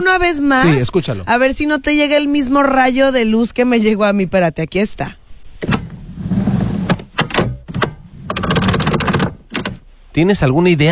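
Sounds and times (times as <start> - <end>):
speech: 0.0 - 5.8, 10.2 - 10.8
car ignition cranking: 5.2 - 10.2.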